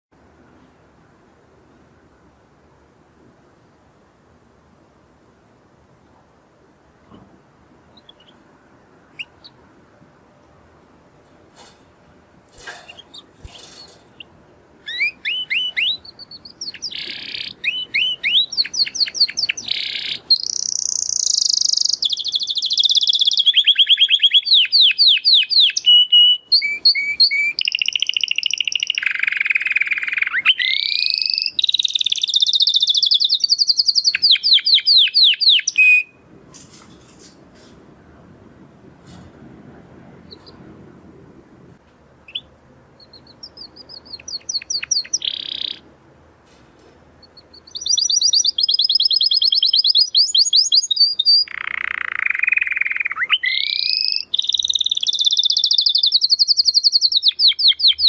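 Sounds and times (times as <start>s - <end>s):
canary singing: 7.9s - 9.6s, 12.6s - 36.2s, 40.2s - 40.6s, 42.2s - 46.0s, 47.2s - 58.0s.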